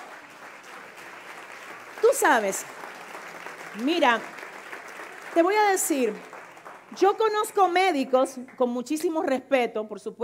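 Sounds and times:
audience applause: 0.0s - 7.8s
speech: 2.2s - 2.8s, 3.8s - 4.4s, 5.4s - 6.3s, 6.9s - 10.2s.

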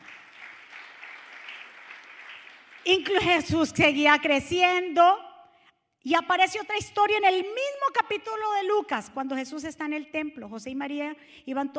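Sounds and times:
audience applauding: 0.0s - 3.1s
speech: 2.8s - 5.3s, 6.0s - 11.7s.

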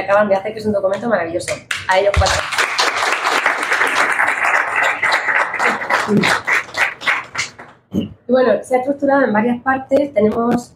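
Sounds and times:
speech: 0.0s - 2.7s, 6.1s - 6.5s, 7.9s - 10.7s
audience applause: 2.1s - 7.8s.

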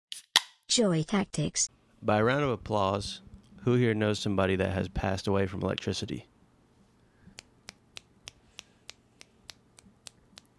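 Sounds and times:
speech: 0.8s - 6.3s
finger snapping: 7.3s - 10.5s.

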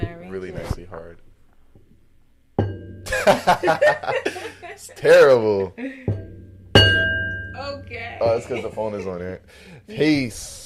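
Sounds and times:
laughter: 3.1s - 6.1s, 8.3s - 9.4s
speech: 3.2s - 6.2s, 7.6s - 10.6s
bell being dinged: 6.1s - 9.0s.

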